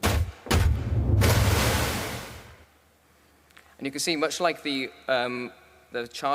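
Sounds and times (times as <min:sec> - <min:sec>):
sharp loud impacts with deep low-end thump from slapped snowballs: 0:00.0 - 0:02.4
speech: 0:03.8 - 0:06.3.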